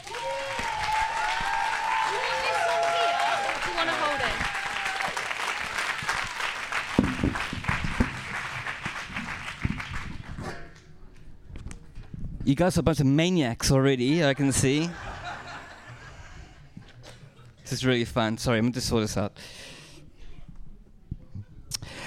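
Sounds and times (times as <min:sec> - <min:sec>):
cheering voices: 0:00.0 - 0:06.4
crowd applauding: 0:00.0 - 0:10.4
speech: 0:12.5 - 0:15.0, 0:17.7 - 0:19.6
laughter: 0:14.8 - 0:17.6.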